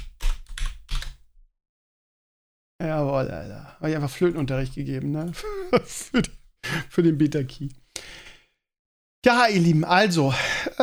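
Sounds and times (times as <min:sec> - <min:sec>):
person typing a reply on a computer keyboard: 0:00.0 - 0:01.2
speech: 0:02.8 - 0:07.8, 0:09.2 - 0:10.8.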